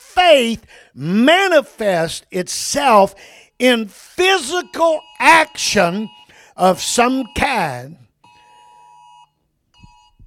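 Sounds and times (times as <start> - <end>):
speech: 0.3 - 8.0
phone Amber Alert emergency tone: 4.3 - 10.2.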